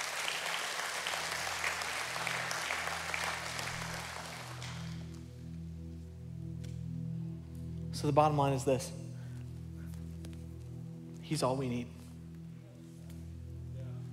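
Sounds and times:
crowd applauding: 0:00.0 - 0:05.2
sustained low musical chords: 0:01.0 - 0:14.1
speech: 0:08.0 - 0:09.0, 0:11.3 - 0:12.0.

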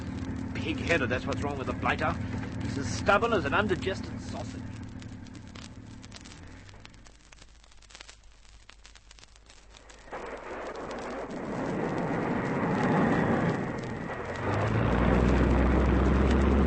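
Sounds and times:
airplane engine taking off from water: 0:00.0 - 0:06.8, 0:10.8 - 0:16.6
speech: 0:00.6 - 0:04.7.

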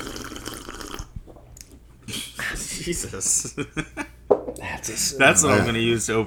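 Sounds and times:
person sipping a drink: 0:00.0 - 0:02.3
laughter: 0:02.1 - 0:04.2, 0:04.8 - 0:06.1
speech: 0:02.8 - 0:04.1, 0:04.8 - 0:06.2.

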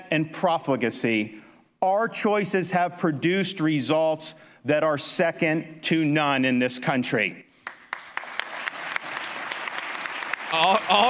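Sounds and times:
speech: 0:00.1 - 0:07.4, 0:10.5 - 0:11.0
crowd applauding: 0:07.6 - 0:11.0.

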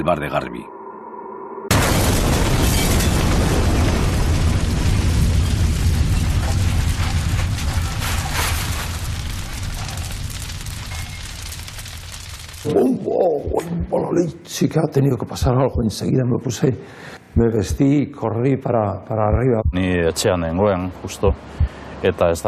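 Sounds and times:
speech: 0:00.0 - 0:00.8, 0:12.6 - 0:22.4
bomb explosion of 6 kilos of Goma 2 at bar door: 0:01.7 - 0:14.0.

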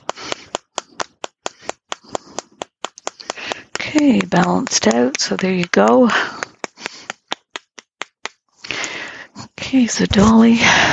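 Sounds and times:
quick crisp taps on the head: 0:00.0 - 0:08.4
speech: 0:03.9 - 0:06.4, 0:09.7 - 0:10.9.

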